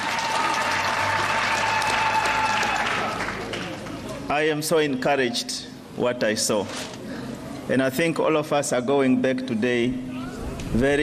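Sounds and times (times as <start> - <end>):
audience applause: 0.0 - 4.1
speech: 4.3 - 7.0, 7.7 - 10.1, 10.7 - 11.0.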